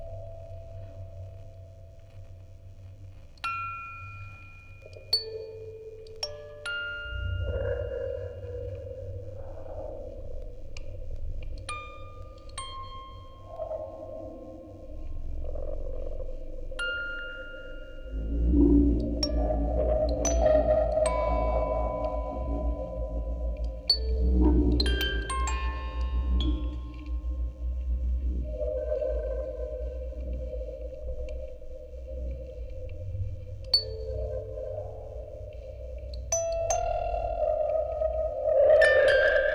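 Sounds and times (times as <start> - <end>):
tape recording: 0.0 - 39.5
music box quartet: 3.4 - 8.4, 11.6 - 13.8, 19.0 - 27.9, 36.1 - 37.9.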